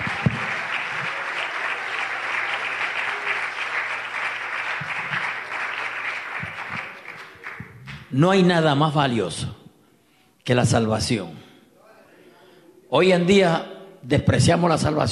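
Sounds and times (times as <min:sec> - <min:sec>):
audience applause: 0:00.0 - 0:08.0
speech: 0:08.1 - 0:09.6, 0:10.4 - 0:11.4, 0:12.9 - 0:15.1.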